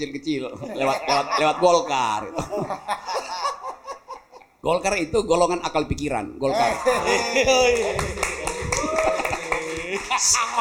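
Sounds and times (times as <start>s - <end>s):
speech: 0.0s - 3.4s, 4.6s - 8.4s, 10.2s - 10.6s
laughter: 0.6s - 4.4s, 6.5s - 10.6s
scattered audience clapping: 7.4s - 10.6s.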